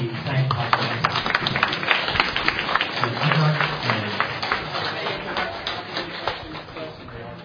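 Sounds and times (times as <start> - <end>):
audience applause: 0.0 - 7.2.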